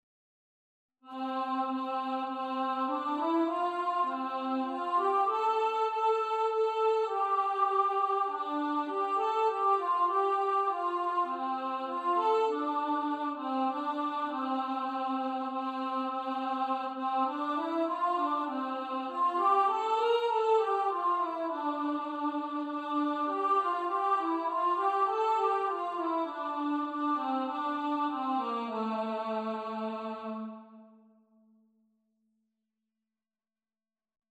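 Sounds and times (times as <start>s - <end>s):
alto voice singing a carol: 1.1s - 30.8s.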